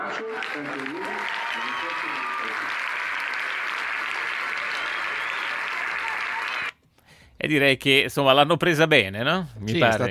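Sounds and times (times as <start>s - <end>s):
enthusiastic audience applause: 0.0s - 6.7s
speech: 0.2s - 2.9s, 7.4s - 10.1s.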